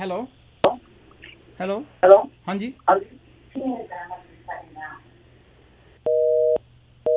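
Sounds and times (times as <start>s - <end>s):
speech: 0.0s - 0.4s, 1.6s - 5.0s
telephone busy tone after a call line dropped: 6.1s - 7.1s.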